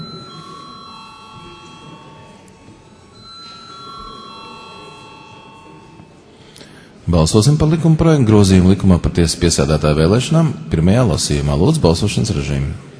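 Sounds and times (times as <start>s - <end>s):
electric bell ringing in a parliament chamber before a vote: 0.0s - 6.5s
speech: 7.1s - 12.9s.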